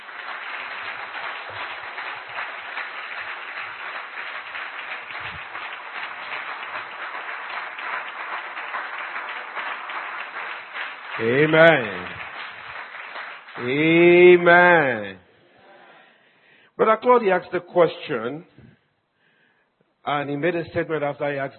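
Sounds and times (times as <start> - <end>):
crowd clapping: 0.0 - 15.0
speech: 11.2 - 12.2, 13.6 - 15.2, 16.8 - 18.7, 20.0 - 21.5.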